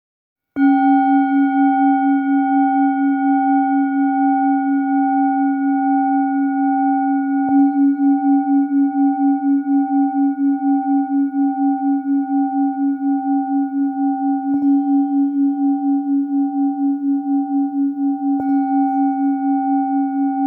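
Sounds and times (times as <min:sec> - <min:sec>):
Tibetan singing bowls in C and G: 0:00.6 - 0:20.4.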